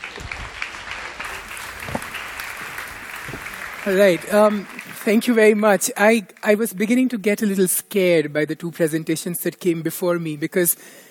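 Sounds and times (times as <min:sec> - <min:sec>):
audience applause: 0:00.0 - 0:05.5
speech: 0:03.9 - 0:11.0.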